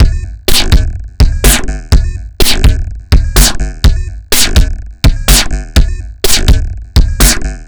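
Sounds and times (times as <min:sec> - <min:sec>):
strange drums: 0:00.0 - 0:07.6.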